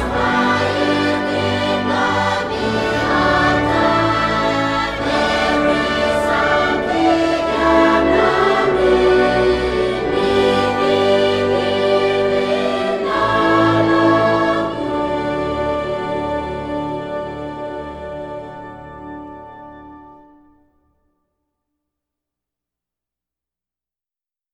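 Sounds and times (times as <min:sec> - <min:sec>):
chorus singing: 0:00.0 - 0:19.6.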